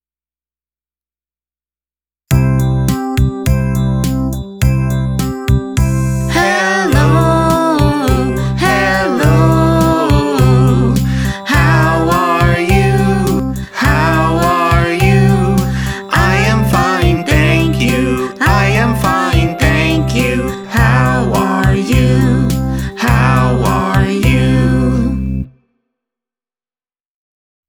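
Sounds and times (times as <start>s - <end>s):
hello song: 2.4s - 25.5s.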